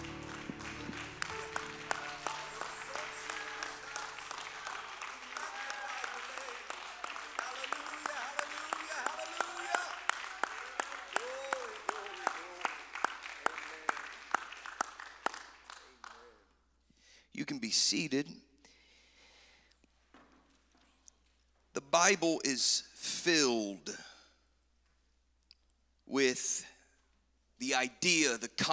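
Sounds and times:
audience clapping hands: 0.0s - 16.5s
speech: 17.6s - 18.4s, 22.0s - 24.0s, 26.2s - 26.7s, 27.8s - 28.7s.

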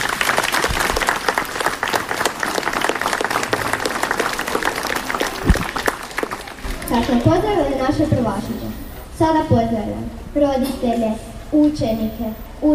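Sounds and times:
applause for first-graders at a school ceremony: 0.0s - 7.6s
speech: 6.9s - 12.7s.

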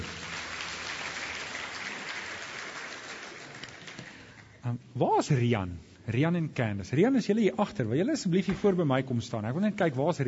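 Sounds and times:
audience applause for the band: 0.0s - 4.5s
speech: 4.6s - 10.2s.

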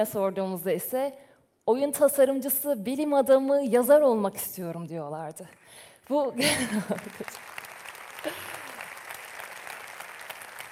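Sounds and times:
speech: 0.0s - 7.5s
laughter: 6.4s - 7.4s
audience applause: 6.6s - 10.7s.

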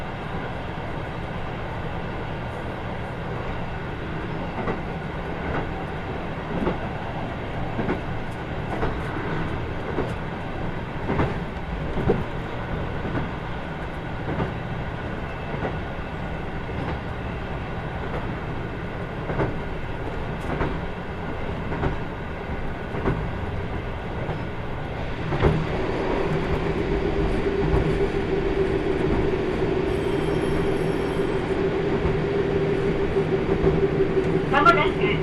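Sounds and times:
Kyushu Odan limited express rumble on the Hohi Main Line: 0.0s - 35.2s
rail clicks and knocks: 4.5s - 14.6s, 19.2s - 35.2s.

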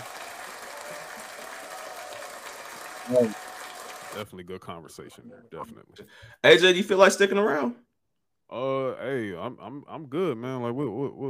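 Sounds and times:
audience applause: 0.0s - 4.2s
speech: 3.1s - 3.4s, 4.2s - 7.9s, 8.5s - 11.2s.

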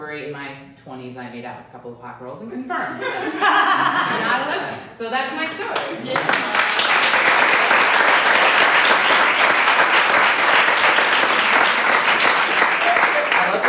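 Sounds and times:
speech: 0.1s - 6.8s
laughter: 2.7s - 4.9s
audience applause: 5.8s - 13.6s.

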